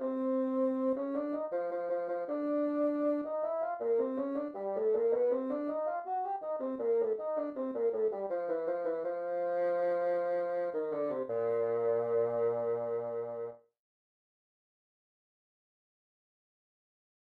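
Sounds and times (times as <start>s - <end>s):
bassoon: 0.0s - 13.6s.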